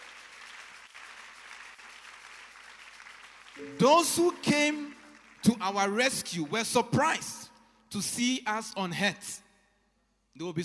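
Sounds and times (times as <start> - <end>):
crowd clapping: 0.0 - 6.8
speech: 3.6 - 9.4, 10.4 - 10.6.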